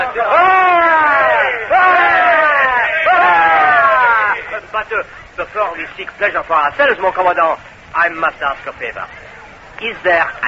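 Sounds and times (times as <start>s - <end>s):
group of men giving three cheers: 0.0s - 4.7s
speech: 4.7s - 10.4s.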